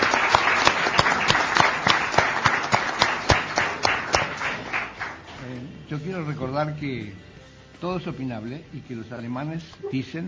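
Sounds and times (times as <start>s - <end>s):
audience applause: 0.0s - 5.5s
speech: 5.9s - 10.2s.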